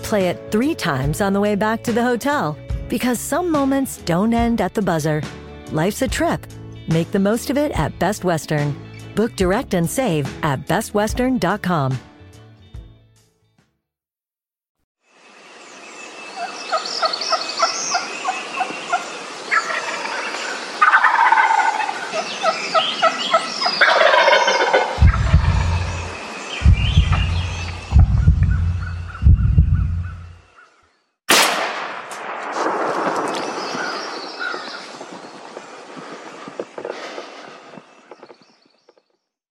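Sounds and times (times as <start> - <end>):
speech: 0.1 - 12.1
dense chorus of birdsong: 15.5 - 31.1, 33.4 - 39.2
wild turkey gobbling: 16.4 - 26.2, 26.8 - 30.2
deep booming thumps: 24.8 - 30.4
sharp crack: 31.3 - 34.2.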